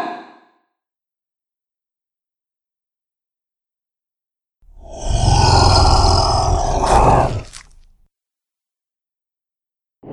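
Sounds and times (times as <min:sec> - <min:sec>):
dragon monster sounds: 0:04.7 - 0:07.9.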